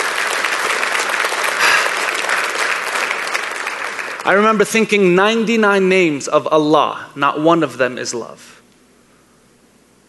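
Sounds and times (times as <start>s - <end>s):
audience applause: 0.0s - 4.4s
speech: 4.2s - 8.6s.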